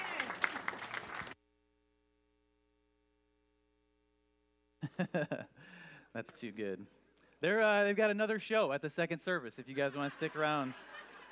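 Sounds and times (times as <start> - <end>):
audience applause: 0.0 - 1.4
laughter: 4.8 - 5.6, 9.6 - 11.3
speech: 5.0 - 11.1.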